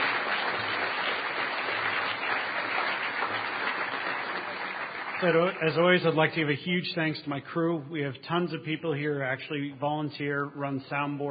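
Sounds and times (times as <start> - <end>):
audience applause: 0.0 - 6.0
speech: 5.2 - 11.2.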